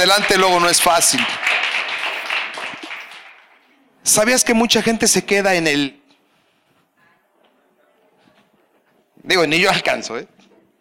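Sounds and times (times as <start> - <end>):
speech: 0.0 - 1.8, 4.0 - 6.0, 9.2 - 10.4
audience applause: 0.0 - 3.7.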